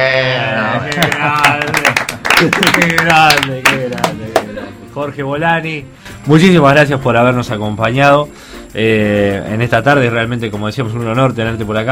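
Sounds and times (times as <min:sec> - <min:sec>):
audience applause: 0:00.9 - 0:04.4
speech: 0:00.9 - 0:11.8.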